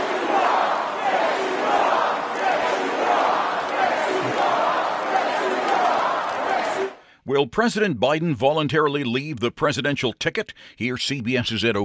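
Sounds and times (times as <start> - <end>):
crowd at a Trump rally chanting in unison: 0.0 - 7.0
speech: 7.4 - 11.8.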